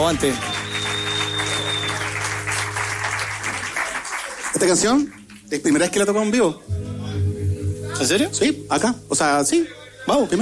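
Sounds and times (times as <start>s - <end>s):
Sala Master live studio audience applause: 0.0s - 6.2s
speech: 0.1s - 0.6s, 4.6s - 6.8s, 8.0s - 10.3s.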